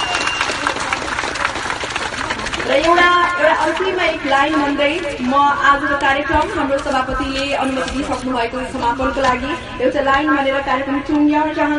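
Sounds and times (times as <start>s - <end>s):
loud audience applause at the close of a program: 0.0s - 3.7s
speech: 2.8s - 11.7s.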